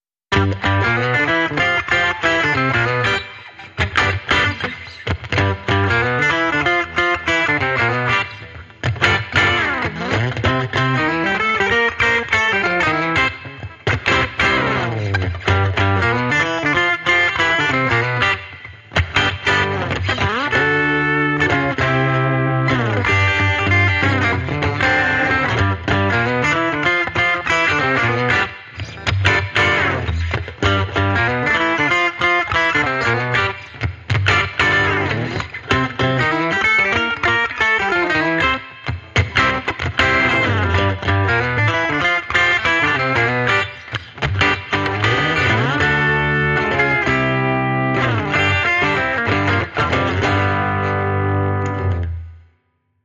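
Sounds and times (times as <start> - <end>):
electric redneck guitar: 0.3 - 52.6.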